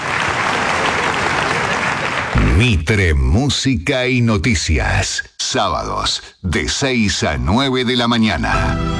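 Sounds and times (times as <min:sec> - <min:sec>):
audience applause: 0:00.0 - 0:02.6
speech: 0:02.6 - 0:08.9.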